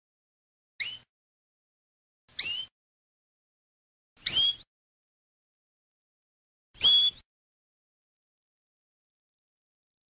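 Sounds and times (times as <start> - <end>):
canary singing: 0.8 - 1.1, 2.3 - 2.8, 4.2 - 4.7, 6.8 - 7.3.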